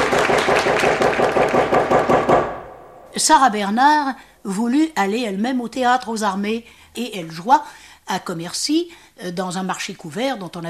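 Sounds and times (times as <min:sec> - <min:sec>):
audience applause: 0:00.0 - 0:01.9
speech: 0:03.2 - 0:10.6.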